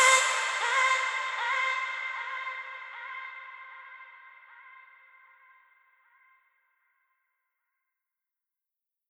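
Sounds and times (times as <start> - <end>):
future bass chopped vocal melody with reverb: 0.0 - 6.3.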